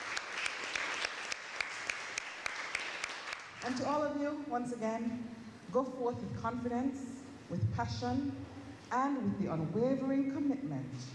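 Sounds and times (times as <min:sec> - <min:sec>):
audience applause: 0:00.0 - 0:03.6
speech: 0:03.6 - 0:11.1.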